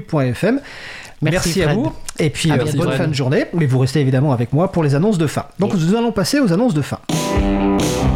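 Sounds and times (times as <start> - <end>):
speech: 0.0 - 8.0
short radio jingle: 2.5 - 3.3.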